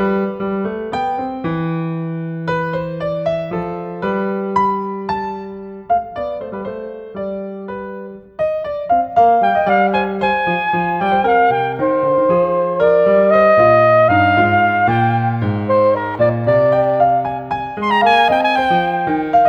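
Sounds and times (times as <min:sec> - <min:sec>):
piano: 0:00.0 - 0:19.4
soprano saxophone: 0:09.2 - 0:19.4.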